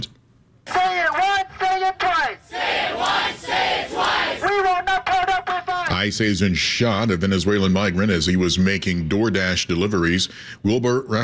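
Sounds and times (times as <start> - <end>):
crowd of protesters chanting and yelling: 0.7 - 5.9
speech: 6.0 - 11.2.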